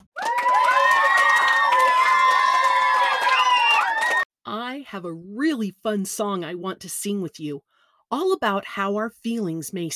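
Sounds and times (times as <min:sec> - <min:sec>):
children applauding: 0:00.0 - 0:04.3
speech: 0:04.9 - 0:09.9.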